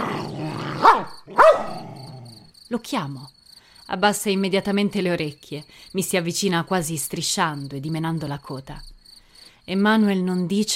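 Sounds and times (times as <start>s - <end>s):
aggressive dog barking: 0.0s - 2.0s
aggressive dog growling: 0.0s - 2.5s
speech: 2.7s - 8.9s, 9.7s - 10.7s.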